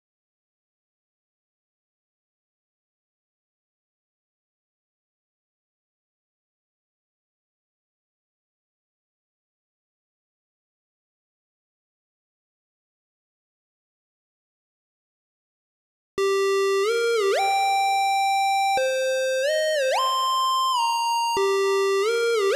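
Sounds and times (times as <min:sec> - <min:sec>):
synth lead: 0:16.2 - 0:22.5.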